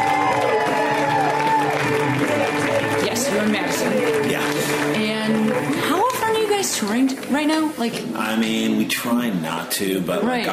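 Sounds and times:
audience cheering: 0:00.0 - 0:05.7
audience applause: 0:00.0 - 0:07.1
speech: 0:06.8 - 0:10.5.

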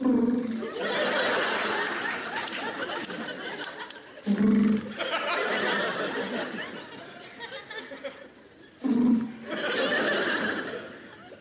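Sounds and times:
voice imitating a pigeon's cooing call: 0:00.0 - 0:00.7, 0:04.2 - 0:05.0, 0:08.8 - 0:09.4
laughter: 0:00.6 - 0:08.6, 0:09.3 - 0:11.4.

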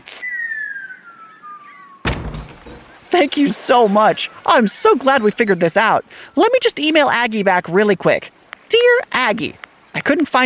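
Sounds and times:
boat boarding plank being lowered: 0:02.1 - 0:03.1
speech: 0:03.1 - 0:10.4.

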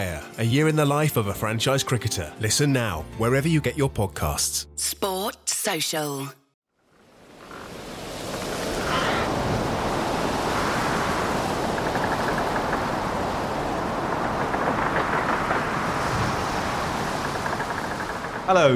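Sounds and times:
speech: 0:00.0 - 0:06.4, 0:18.5 - 0:18.7
rain across the UK: 0:06.8 - 0:18.7
wind howling across the UK: 0:06.9 - 0:18.7.

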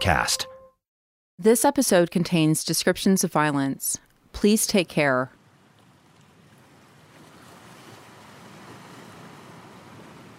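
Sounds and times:
speech: 0:00.0 - 0:00.5, 0:01.4 - 0:05.4
ocean waves washing onto the shore at Wasaga Beach: 0:05.3 - 0:10.3.

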